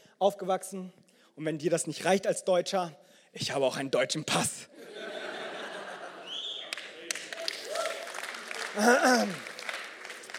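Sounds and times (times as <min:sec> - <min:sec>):
speech: 0:00.2 - 0:04.9, 0:08.8 - 0:09.5
laughter: 0:04.8 - 0:07.3
single person clapping: 0:06.7 - 0:10.3.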